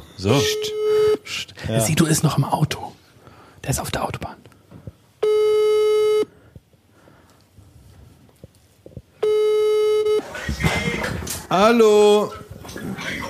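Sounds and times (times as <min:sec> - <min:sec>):
speech: 0:00.2 - 0:03.0, 0:03.6 - 0:04.4, 0:11.5 - 0:12.4
electronic ringback tones of an outgoing phone call: 0:05.2 - 0:06.3, 0:09.2 - 0:10.3.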